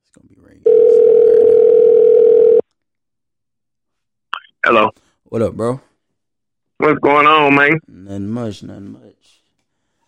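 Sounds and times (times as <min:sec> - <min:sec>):
phone call ringing tone: 0:00.7 - 0:02.6
speech: 0:04.7 - 0:05.9, 0:06.8 - 0:09.4.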